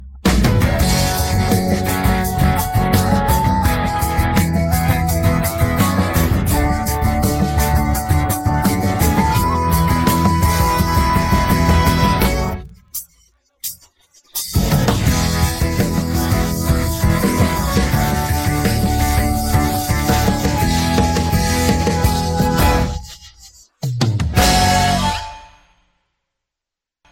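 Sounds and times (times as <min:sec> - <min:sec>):
instrumental music: 0:00.1 - 0:25.6.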